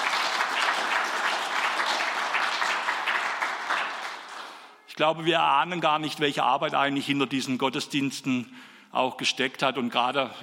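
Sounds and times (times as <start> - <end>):
audience applause: 0.0 - 4.8
speech: 5.0 - 10.4.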